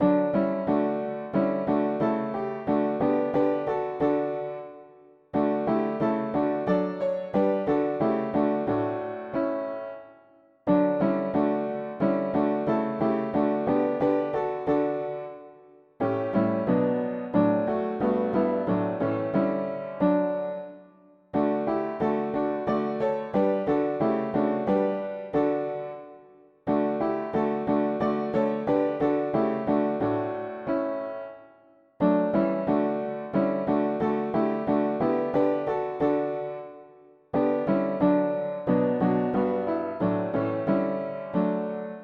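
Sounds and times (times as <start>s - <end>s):
mono piano: 0.0s - 42.0s.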